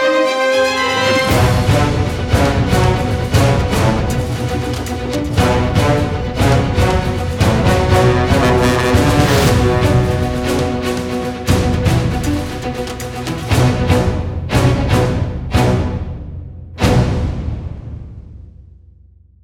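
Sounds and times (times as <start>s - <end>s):
battle music in B minor: 0.0s - 18.4s.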